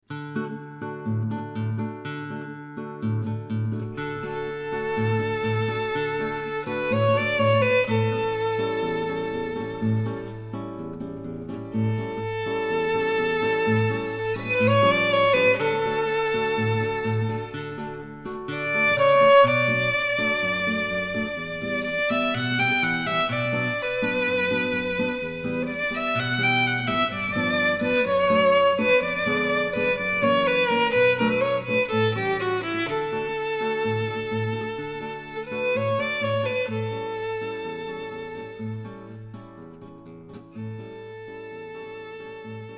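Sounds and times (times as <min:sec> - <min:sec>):
guitar: 0:00.0 - 0:42.7
violin: 0:03.0 - 0:42.7.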